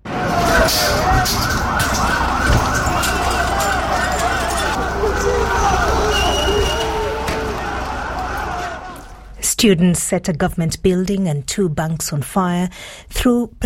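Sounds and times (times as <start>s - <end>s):
crowd shouting at a street protest: 0.0s - 9.3s
wailing sirens: 0.0s - 9.3s
speech: 9.6s - 13.6s.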